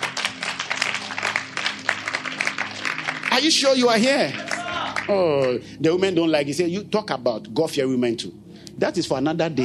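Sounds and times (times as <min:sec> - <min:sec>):
audience clapping hands: 0:00.0 - 0:05.6
speech: 0:03.4 - 0:04.5, 0:05.1 - 0:09.6.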